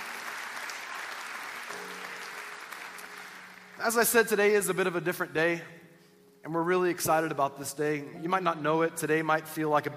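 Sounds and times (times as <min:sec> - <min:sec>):
church congregation applauding to welcome guests at a New Year's Day service: 0:00.0 - 0:04.7
speech: 0:03.8 - 0:05.8, 0:06.5 - 0:09.9.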